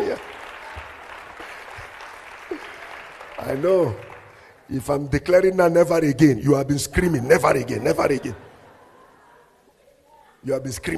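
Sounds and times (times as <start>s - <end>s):
church congregation clapping weakly in praise: 0.0s - 4.7s
speech: 3.5s - 4.1s, 4.7s - 8.5s, 10.4s - 10.9s.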